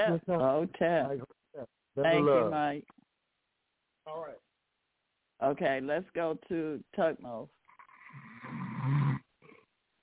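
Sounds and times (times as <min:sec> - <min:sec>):
speech: 0:00.0 - 0:03.0, 0:04.0 - 0:04.4, 0:05.4 - 0:09.0
man snoring: 0:08.0 - 0:09.2.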